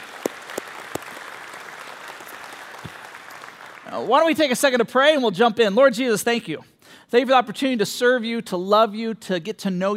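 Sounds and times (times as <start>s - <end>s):
audience applause: 0.0s - 4.1s
speech: 3.9s - 9.9s.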